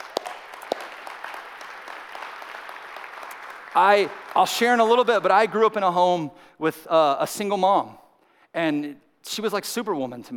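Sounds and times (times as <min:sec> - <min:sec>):
church congregation clapping for single parents: 0:00.0 - 0:06.0
speech: 0:03.8 - 0:08.0, 0:08.6 - 0:10.3.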